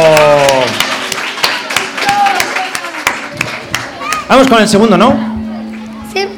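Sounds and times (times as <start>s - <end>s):
scattered hand claps from a small audience: 0.0s - 4.8s
chatter: 0.7s - 6.3s
speech: 4.3s - 5.4s.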